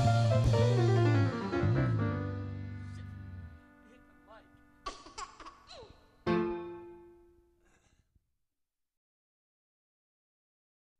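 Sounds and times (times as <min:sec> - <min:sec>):
polka music: 0:00.0 - 0:05.2.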